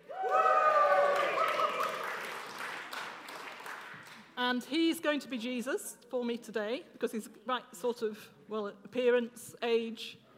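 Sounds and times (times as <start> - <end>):
round of applause: 0.0 - 4.3
speech: 4.5 - 10.2.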